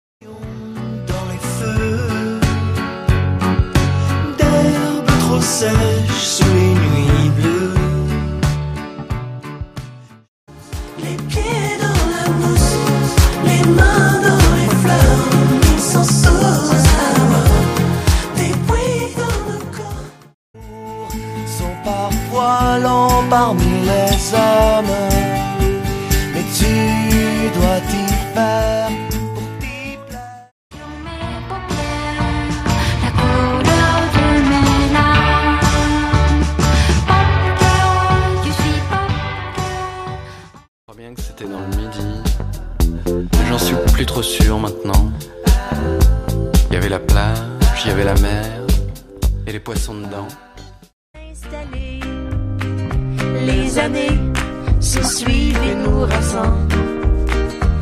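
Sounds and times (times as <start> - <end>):
MIDI music: 1.2 - 30.3, 31.2 - 40.3, 40.9 - 50.5, 51.6 - 57.7.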